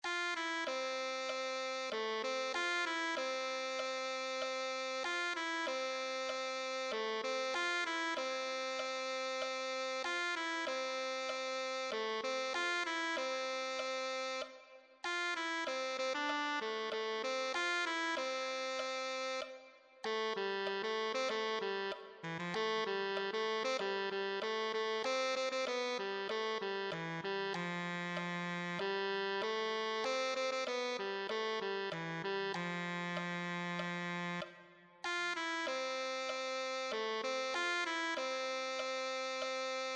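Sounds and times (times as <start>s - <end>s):
tenor saxophone: 0.0s - 39.9s.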